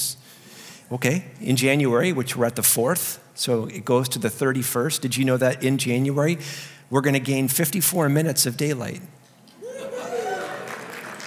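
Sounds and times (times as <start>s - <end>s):
speech: 0.9s - 9.2s
laughter: 9.6s - 11.2s
thin tepid applause from an audience: 10.0s - 11.2s.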